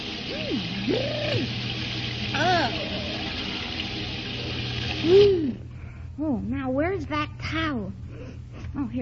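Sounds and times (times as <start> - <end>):
cold shower water running: 0.0 - 5.7
speech: 0.3 - 1.7, 5.0 - 5.6, 6.2 - 8.0, 8.7 - 9.0.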